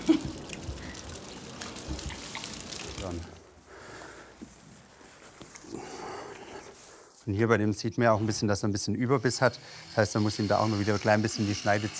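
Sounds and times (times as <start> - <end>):
water sloshing and splashing as a mouth is rinsed: 0.0 - 3.6
water spurts and drips: 0.0 - 4.5
speech: 3.0 - 3.4, 7.3 - 11.9.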